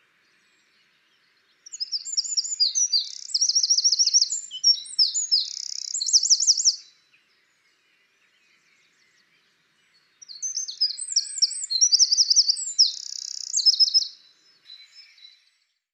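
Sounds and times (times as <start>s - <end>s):
Eurasian wren singing: 1.6s - 7.0s, 9.9s - 15.4s.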